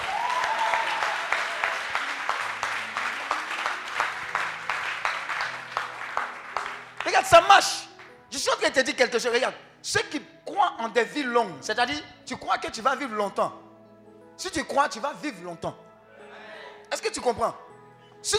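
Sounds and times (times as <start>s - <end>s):
crowd audience cheering and applauding: 0.0s - 8.1s
speech: 7.2s - 13.6s, 14.4s - 15.9s, 17.0s - 17.6s.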